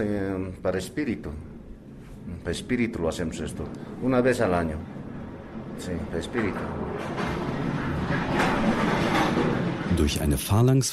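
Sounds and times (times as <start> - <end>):
speech: 0.0 - 1.6, 2.3 - 5.0, 5.8 - 7.5, 8.1 - 10.9
heavy mine carts loaded with rubble racing out of a mine on rails: 2.6 - 10.6.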